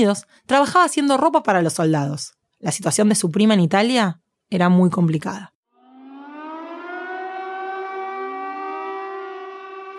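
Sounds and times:
speech: 0:00.0 - 0:05.6
air raid siren wailing: 0:05.7 - 0:09.9.

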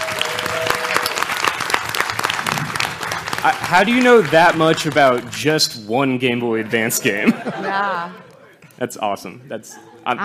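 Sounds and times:
live audience applause: 0:00.0 - 0:05.6
speech: 0:03.4 - 0:08.2, 0:08.8 - 0:10.2
laughter: 0:06.6 - 0:08.8.

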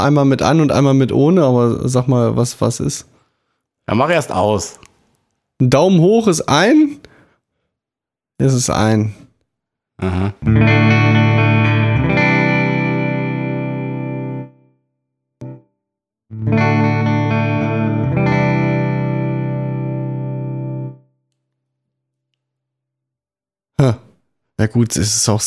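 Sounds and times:
speech: 0:00.0 - 0:03.2, 0:03.9 - 0:04.9, 0:05.6 - 0:07.0, 0:08.4 - 0:09.2, 0:10.0 - 0:11.2, 0:24.6 - 0:25.4
electric guitar chords through an effects pedal: 0:10.4 - 0:14.6, 0:15.4 - 0:15.6, 0:16.3 - 0:21.0.

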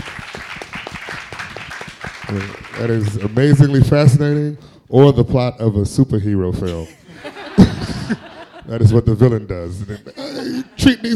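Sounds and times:
hands clapping: 0:00.0 - 0:04.6
speech: 0:02.3 - 0:07.0, 0:08.1 - 0:11.1
laughter: 0:06.7 - 0:11.1.

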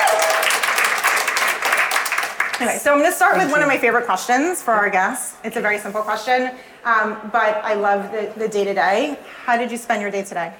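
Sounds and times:
audience cheering and applause for a guest instructor at a live evening show: 0:00.0 - 0:02.8
speech: 0:02.6 - 0:10.5.

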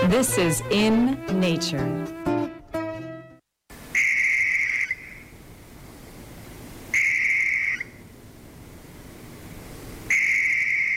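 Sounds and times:
speech: 0:00.1 - 0:02.2
barn owl call: 0:03.9 - 0:05.3, 0:06.9 - 0:08.0, 0:10.1 - 0:10.9.

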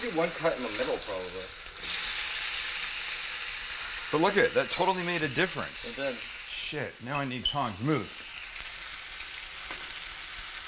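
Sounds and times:
speech: 0:00.0 - 0:01.9, 0:04.1 - 0:08.2
bologna sizzling while frying in a pan: 0:00.0 - 0:10.6.

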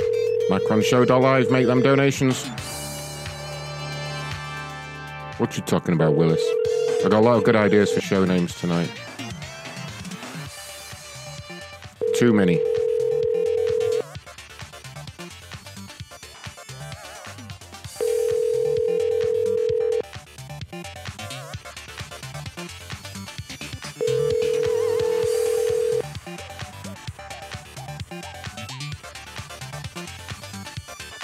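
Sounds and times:
telephone ringing through to voicemail: 0:00.0 - 0:02.4, 0:05.9 - 0:08.4, 0:12.0 - 0:14.0, 0:18.0 - 0:20.0, 0:24.0 - 0:26.1
speech: 0:00.5 - 0:02.7, 0:05.4 - 0:09.1, 0:12.2 - 0:12.8.

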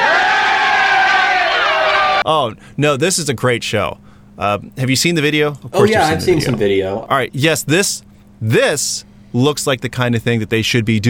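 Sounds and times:
delighted crowd cheering: 0:00.0 - 0:02.2
speech: 0:02.3 - 0:11.0.

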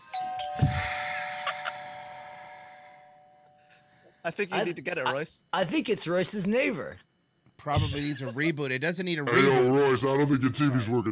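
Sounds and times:
doorbell chiming: 0:00.0 - 0:03.9
speech: 0:04.3 - 0:11.1.

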